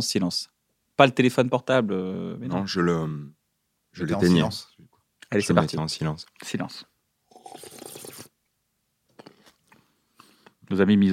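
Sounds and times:
speech: 0.0 - 3.4, 4.0 - 6.9, 10.7 - 11.1
crunchy mouth noises: 7.3 - 8.4, 9.1 - 10.6.

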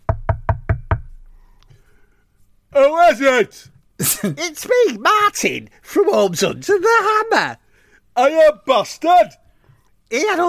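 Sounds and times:
firm knocks on a house door: 0.0 - 1.2
speech: 2.8 - 7.6, 8.2 - 9.4, 10.1 - 10.4.

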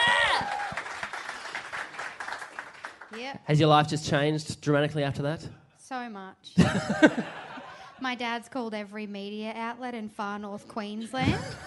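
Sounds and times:
person whooping: 0.0 - 0.9
audience applause: 0.0 - 3.2
speech: 3.5 - 7.4, 8.0 - 11.6
laughter: 6.6 - 8.0, 11.0 - 11.6.

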